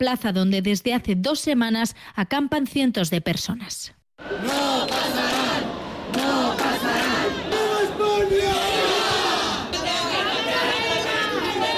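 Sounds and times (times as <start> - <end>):
speech: 0.0 - 5.2
crowd shouting and chanting: 4.2 - 11.7.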